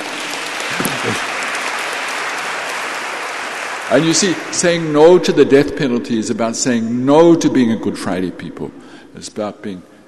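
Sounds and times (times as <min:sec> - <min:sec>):
audience clapping: 0:00.0 - 0:06.0
speech: 0:03.9 - 0:09.9.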